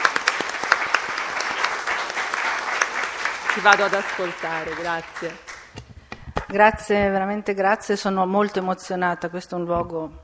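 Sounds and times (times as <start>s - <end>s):
audience applause welcoming a speaker: 0.0s - 5.8s
speech: 3.6s - 5.5s, 6.5s - 10.2s.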